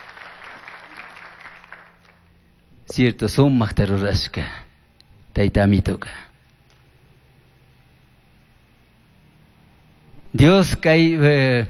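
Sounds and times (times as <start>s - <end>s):
audience applause: 0.0s - 2.3s
speech: 2.9s - 4.6s, 5.4s - 6.3s, 10.3s - 11.6s.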